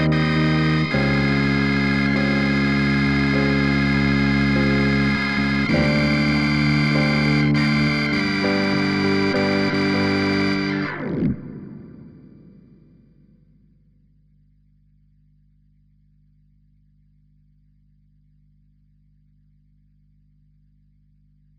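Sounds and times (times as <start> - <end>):
synths and keys: 0.0 - 13.4.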